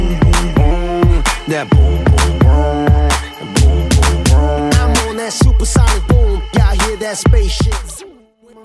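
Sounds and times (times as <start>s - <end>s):
drum loop at 130 bpm: 0.0s - 8.0s.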